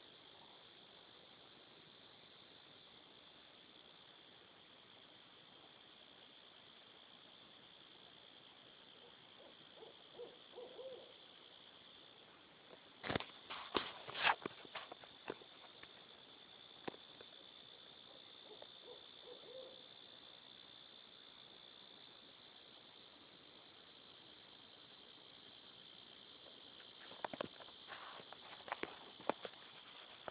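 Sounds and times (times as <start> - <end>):
coyote: 0.0 - 30.2.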